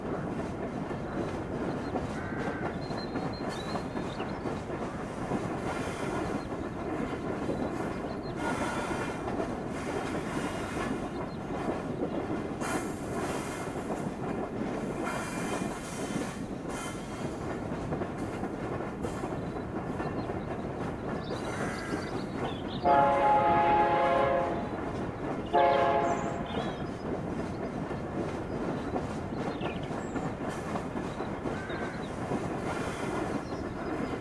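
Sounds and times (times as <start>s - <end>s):
train ambience in the American Midwest: 0.0s - 34.1s.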